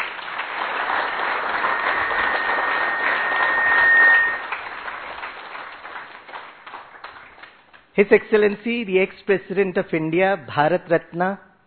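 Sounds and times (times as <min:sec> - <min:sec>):
audience applause at a formal Indian event: 0:00.0 - 0:07.5
speech: 0:08.0 - 0:11.5.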